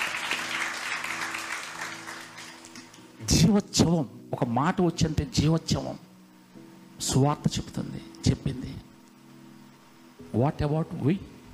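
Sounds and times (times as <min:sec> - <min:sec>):
congregation clapping in praise during a Christian sermon: 0:00.0 - 0:03.2
speech: 0:03.2 - 0:06.0, 0:07.0 - 0:08.9, 0:10.3 - 0:11.3.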